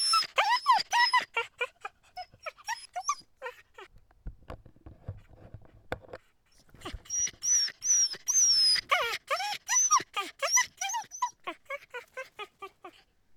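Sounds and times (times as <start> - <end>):
dog yelping high-pitched and whining: 0.0 - 3.9, 6.8 - 13.0.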